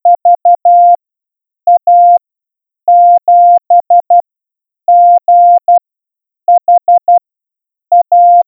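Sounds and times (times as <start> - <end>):
morse code beeps: 0.1 - 1.0, 1.7 - 2.2, 2.9 - 4.2, 4.9 - 5.8, 6.5 - 7.2, 7.9 - 8.4.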